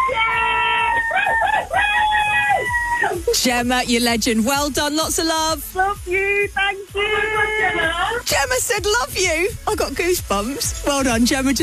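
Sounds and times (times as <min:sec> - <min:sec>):
crowd cheering: 0:00.0 - 0:03.4
speech: 0:03.4 - 0:11.6.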